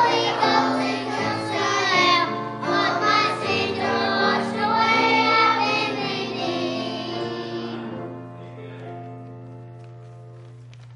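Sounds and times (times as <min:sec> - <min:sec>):
children's choir singing: 0:00.0 - 0:08.1.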